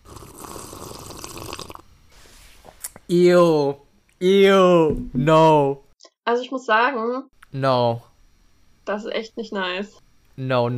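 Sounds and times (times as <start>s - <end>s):
person sipping a vegetable juice drink: 0.0s - 1.8s
speech: 3.1s - 8.1s, 8.9s - 10.7s.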